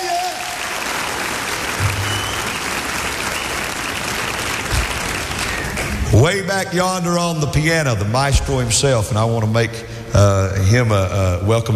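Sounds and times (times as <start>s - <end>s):
audience applause for a performer on a music show stage: 0.0s - 6.1s
speech: 6.1s - 11.7s.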